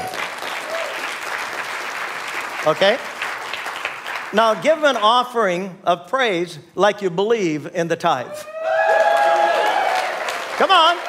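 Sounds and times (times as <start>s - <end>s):
audience applause: 0.0s - 4.4s, 8.7s - 11.0s
speech: 2.6s - 3.1s, 4.3s - 8.6s, 10.6s - 11.0s.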